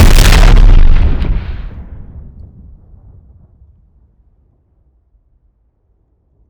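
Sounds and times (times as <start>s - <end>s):
frag grenade explosion: 0.0s - 3.2s.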